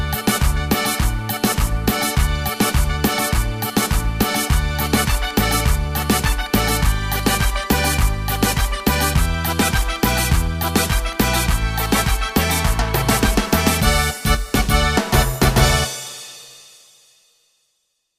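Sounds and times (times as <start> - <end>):
Latin American cumbia music: 0.0 - 16.9.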